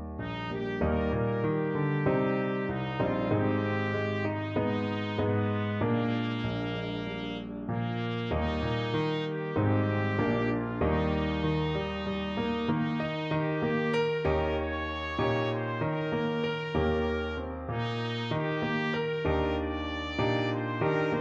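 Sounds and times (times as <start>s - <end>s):
trumpet playing: 0.0s - 21.1s.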